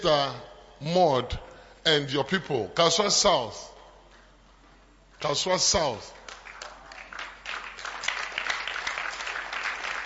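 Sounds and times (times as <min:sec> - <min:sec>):
speech: 0:00.0 - 0:03.7, 0:05.2 - 0:06.2
audience clapping: 0:06.1 - 0:10.0.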